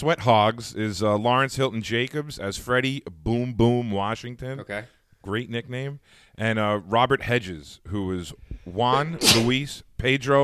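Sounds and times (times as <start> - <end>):
speech: 0.0 - 10.4
person sneezing: 9.0 - 9.6.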